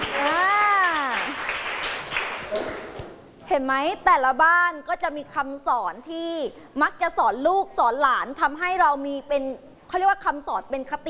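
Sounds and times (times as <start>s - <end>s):
children clapping: 0.0s - 3.0s
speech: 3.6s - 11.0s.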